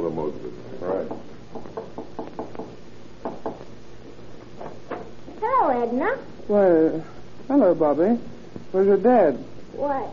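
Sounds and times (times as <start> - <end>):
low steady hum: 0.0 - 10.1
speech: 0.2 - 1.4, 6.0 - 10.1
knuckles knocking on a door: 1.0 - 3.7.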